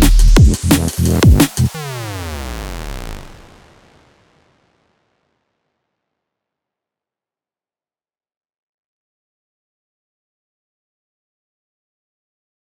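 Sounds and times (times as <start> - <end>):
bass-heavy drum and bass music: 0.0 - 3.5.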